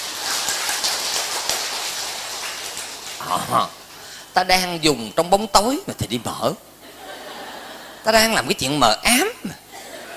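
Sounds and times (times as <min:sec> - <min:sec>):
audience applause: 0:00.0 - 0:03.5
speech: 0:03.2 - 0:03.8, 0:04.4 - 0:06.7, 0:08.0 - 0:09.6
laughter: 0:06.8 - 0:08.1, 0:09.4 - 0:10.1.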